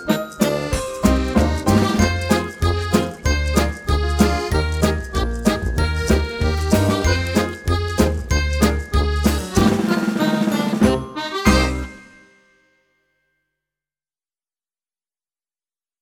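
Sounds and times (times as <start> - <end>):
backing music: 0.0 - 12.3.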